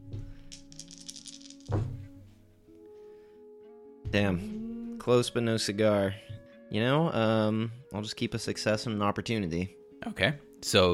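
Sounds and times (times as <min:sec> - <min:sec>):
dice being rolled: 0:00.4 - 0:01.9
speech: 0:04.1 - 0:10.9.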